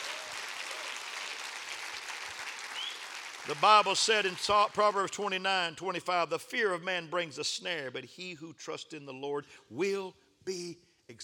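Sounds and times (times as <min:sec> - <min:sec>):
audience clapping hands: 0:00.0 - 0:05.0
speech: 0:03.4 - 0:11.2.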